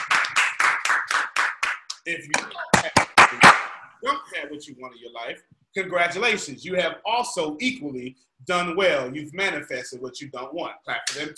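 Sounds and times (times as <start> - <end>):
audience clapping: 0.0 - 3.8
speech: 2.1 - 11.3.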